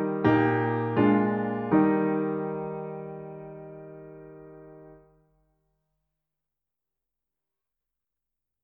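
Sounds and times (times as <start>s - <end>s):
piano: 0.0s - 5.3s.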